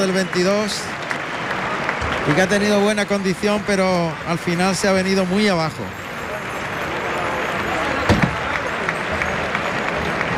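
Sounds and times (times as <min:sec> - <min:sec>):
speech: 0:00.0 - 0:01.1, 0:02.2 - 0:06.0
bullring crowd ovation: 0:00.0 - 0:10.3.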